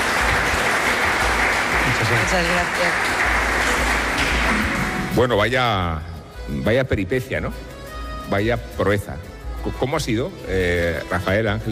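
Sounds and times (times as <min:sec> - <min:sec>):
audience applause: 0:00.0 - 0:05.1
speech: 0:02.1 - 0:03.7, 0:05.2 - 0:07.7, 0:08.3 - 0:11.6.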